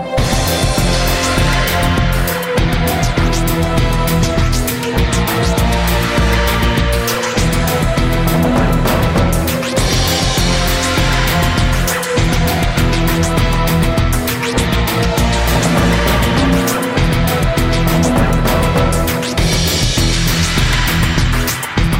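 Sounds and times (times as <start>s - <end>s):
action ambience: 0.1s - 21.8s.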